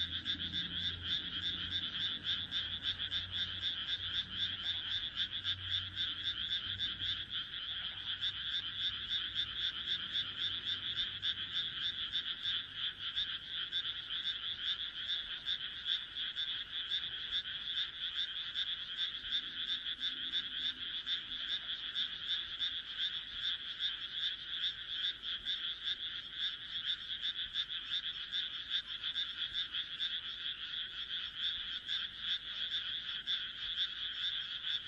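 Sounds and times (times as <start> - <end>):
dense frog chorus of harsh pulsed croaks: 0.0 - 34.8.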